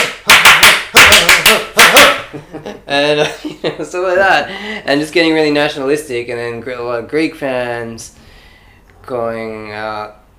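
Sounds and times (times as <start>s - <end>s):
hands clapping: 0.0s - 2.2s
speech: 2.7s - 8.2s, 9.0s - 10.2s.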